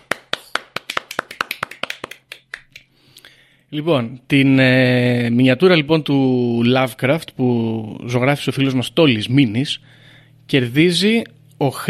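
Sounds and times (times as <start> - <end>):
one person clapping hands: 0.0 - 3.0
speech: 3.7 - 11.8.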